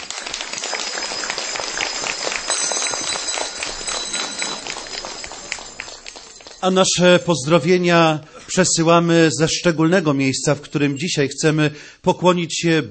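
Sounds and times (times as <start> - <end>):
warm applause: 0.0 - 7.6
speech: 6.6 - 12.8.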